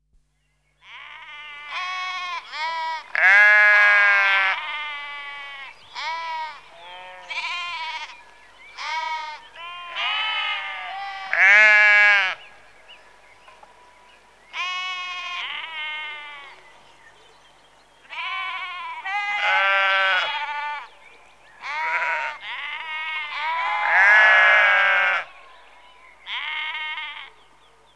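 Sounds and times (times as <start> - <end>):
sheep bleating in a rural outdoor setting: 0.8 - 8.2, 8.8 - 12.4, 14.6 - 16.6, 18.1 - 20.9, 21.6 - 25.6, 26.3 - 27.3.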